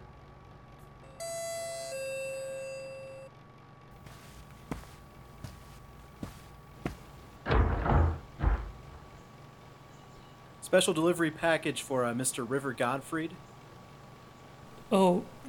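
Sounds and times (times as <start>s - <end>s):
footsteps: 4.0s - 9.2s
front door pulled open with a loud rattle and swoosh: 5.4s - 9.2s
speech: 10.7s - 13.5s, 14.9s - 15.3s.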